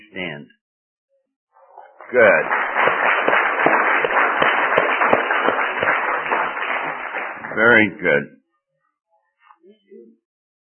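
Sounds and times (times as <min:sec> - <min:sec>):
speech: 0:00.3 - 0:00.6, 0:02.1 - 0:02.7, 0:07.6 - 0:08.4
audience applause: 0:01.8 - 0:08.0.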